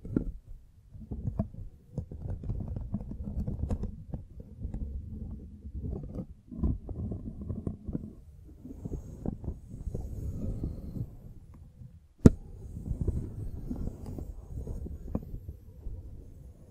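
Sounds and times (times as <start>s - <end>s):
microphone being brushed and scratched: 1.2s - 16.6s.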